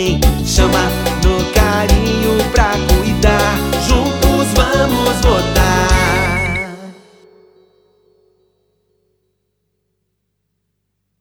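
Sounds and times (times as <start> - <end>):
pisadinha jingle: 0.0 - 7.9.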